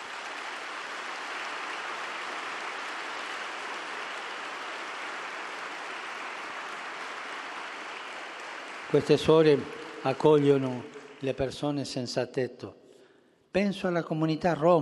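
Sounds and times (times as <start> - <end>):
audience applause: 0.0 - 11.8
speech: 8.9 - 12.8, 13.5 - 14.8.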